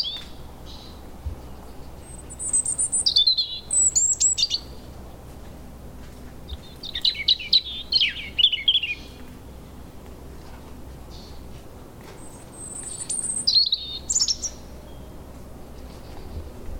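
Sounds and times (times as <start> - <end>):
European robin Erithacus rubecula singing warbled phrases with whistles and trills: 0.0 - 16.6.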